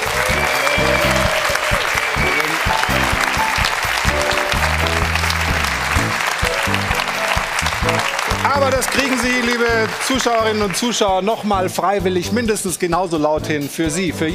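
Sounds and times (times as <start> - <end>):
large crowd applauding thunderously: 0.0 - 11.5
low rumbling tones: 3.9 - 8.8
speech: 8.6 - 14.3.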